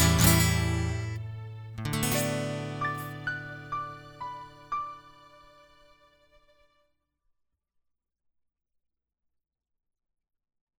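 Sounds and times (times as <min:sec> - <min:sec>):
instrumental music: 0:00.0 - 0:06.2.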